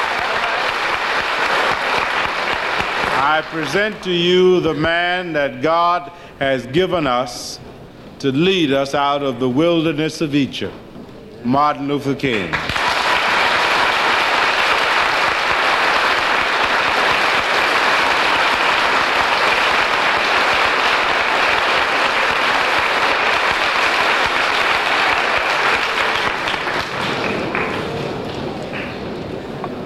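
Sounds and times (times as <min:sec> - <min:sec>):
audience applause: 0:00.0 - 0:04.1, 0:12.4 - 0:29.8
speech: 0:03.2 - 0:10.8, 0:11.4 - 0:12.7.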